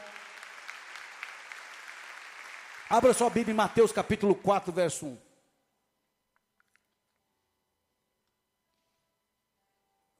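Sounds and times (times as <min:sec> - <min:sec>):
audience applause: 0:00.0 - 0:04.5
speech: 0:02.9 - 0:05.2.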